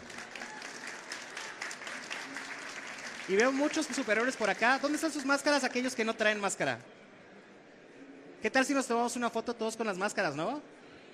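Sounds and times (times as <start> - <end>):
audience applause: 0.0 - 6.4
speech: 3.3 - 7.0, 8.4 - 10.8.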